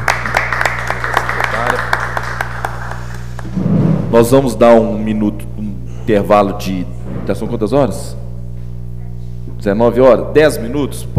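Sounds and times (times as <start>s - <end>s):
audience applause: 0.0s - 3.5s
low constant hum: 0.0s - 11.1s
speech: 4.1s - 8.2s, 9.6s - 11.1s.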